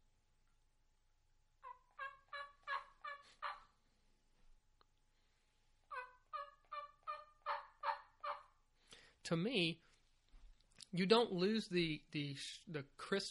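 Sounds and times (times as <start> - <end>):
wild turkey soft tree yelps, first call of the morning: 1.6 - 3.8, 5.9 - 8.6
speech: 9.3 - 9.9, 10.9 - 13.2.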